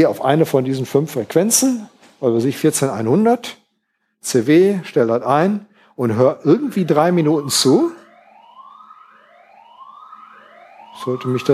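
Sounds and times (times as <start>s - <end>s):
speech: 0.0s - 3.6s, 4.2s - 8.0s, 11.0s - 11.5s
alarm system siren: 6.0s - 11.5s.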